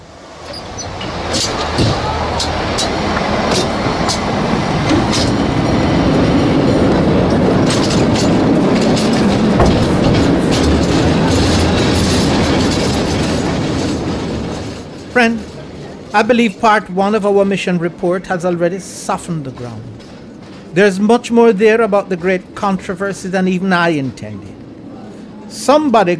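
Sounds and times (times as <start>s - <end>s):
San Francisco cable car rumbling along its rails: 0.0s - 26.1s
speech: 16.2s - 20.1s, 20.7s - 24.5s, 25.5s - 26.1s.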